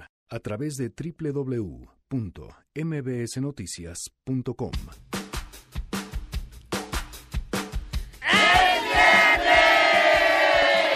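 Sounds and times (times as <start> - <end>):
speech: 0.3 - 5.1
crowd of guests shouting: 8.2 - 10.9.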